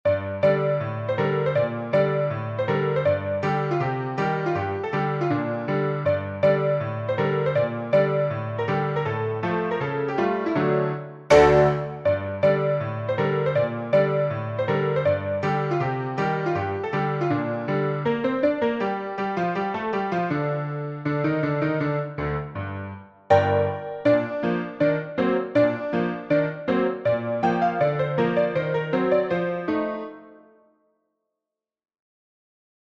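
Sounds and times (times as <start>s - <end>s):
piano: 0.0s - 30.8s.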